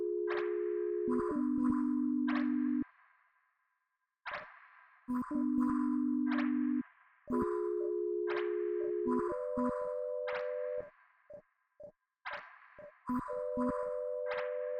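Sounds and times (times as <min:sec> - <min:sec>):
sine wave tone: 0:00.0 - 0:02.8, 0:05.1 - 0:10.9, 0:13.1 - 0:14.7.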